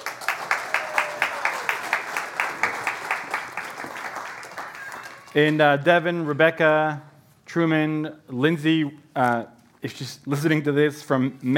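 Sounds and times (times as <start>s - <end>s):
applause for the kids: 0.0s - 5.6s
speech: 5.3s - 11.5s.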